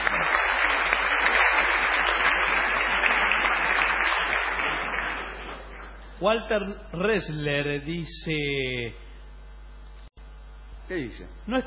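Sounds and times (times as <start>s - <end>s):
applause: 0.0s - 6.2s
speech: 6.2s - 9.0s, 10.9s - 11.6s.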